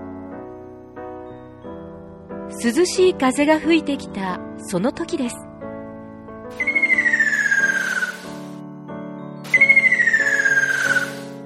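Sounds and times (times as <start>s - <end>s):
speech: 2.5s - 5.4s
ruddy kingfisher call: 6.6s - 8.6s, 9.5s - 11.4s.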